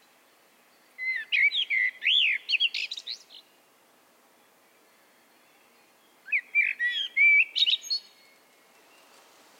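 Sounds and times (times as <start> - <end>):
common blackbird Turdus merula singing whistled phrases: 1.0 - 3.5, 5.5 - 8.4.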